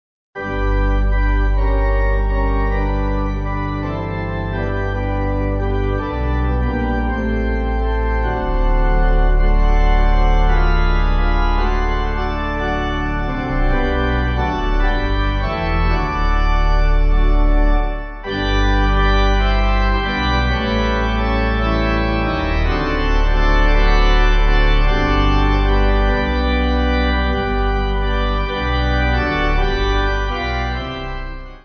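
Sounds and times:
pipe organ backing: 0:00.4 - 0:31.6.

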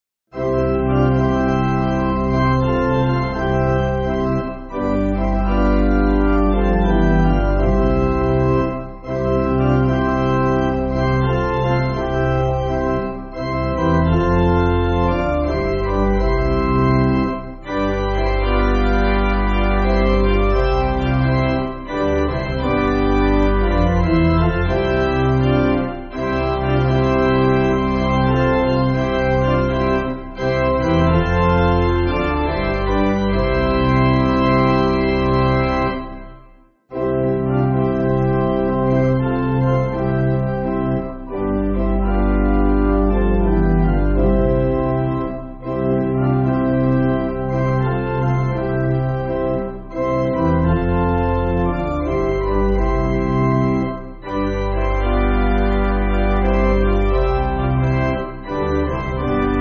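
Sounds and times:
pipe organ backing for churches: 0:00.3 - 0:59.6.

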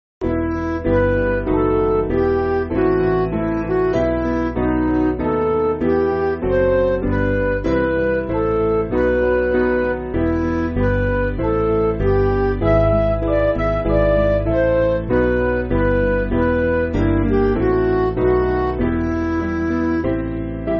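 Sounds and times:
MIDI backing music: 0:00.2 - 0:20.7.

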